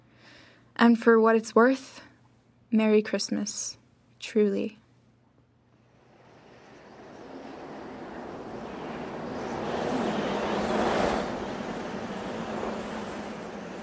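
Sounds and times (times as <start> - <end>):
speech: 0.8 - 2.1, 2.7 - 4.8
bitter howling wind: 5.8 - 13.8.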